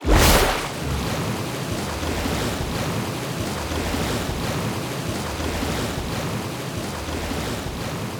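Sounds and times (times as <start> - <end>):
generated tidal wave: 0.0 - 8.1.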